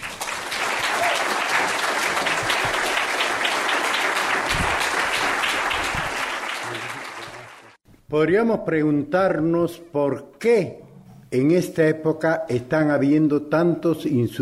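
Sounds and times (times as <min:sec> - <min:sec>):
audience applause welcoming speaker Hugo Blanco: 0:00.0 - 0:07.8
speech: 0:08.1 - 0:14.4.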